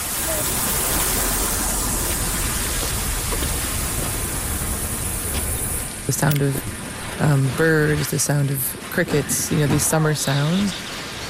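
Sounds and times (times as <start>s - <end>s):
sprinkler spraying water: 0.0s - 6.3s
speech: 6.1s - 10.9s.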